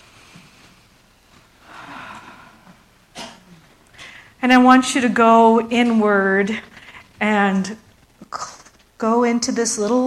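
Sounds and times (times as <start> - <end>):
deep inhaled breath during a guided meditation ceremony: 1.6 - 2.9
speech: 4.4 - 7.8, 9.0 - 10.0.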